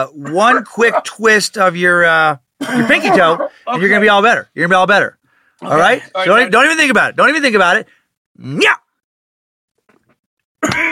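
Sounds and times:
speech: 0.0 - 8.8, 10.6 - 10.8
cough: 2.6 - 3.3, 10.6 - 10.8.

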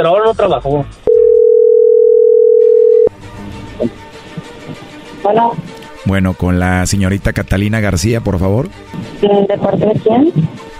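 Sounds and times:
speech: 0.0 - 1.0, 3.8 - 4.0, 4.7 - 10.7
telephone dial tone: 1.1 - 3.1.

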